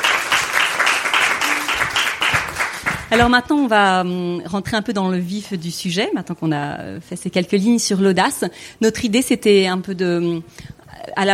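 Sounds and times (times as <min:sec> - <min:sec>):
audience applause after a short poem reading: 0:00.0 - 0:03.1
speech: 0:03.1 - 0:11.3.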